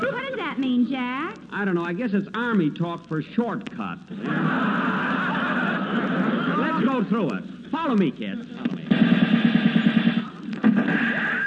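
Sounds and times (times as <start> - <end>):
speech: 0.6 - 5.3, 6.0 - 9.1, 10.8 - 11.4
laughter: 4.1 - 7.2
rapid rattling burst of gunfire: 8.9 - 11.4.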